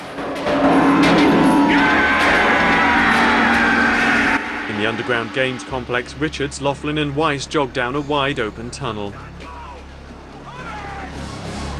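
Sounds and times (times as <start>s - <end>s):
game show studio audience cheering wildly with whooping and yelling: 0.0s - 6.3s
speech: 4.9s - 9.5s.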